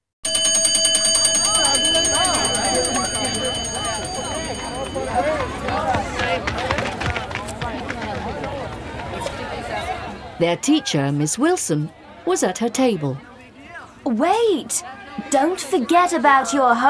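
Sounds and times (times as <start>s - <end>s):
school bell ringing: 0.2s - 6.4s
students running out of the classroom: 0.7s - 10.3s
speech: 10.4s - 13.3s, 14.0s - 16.8s.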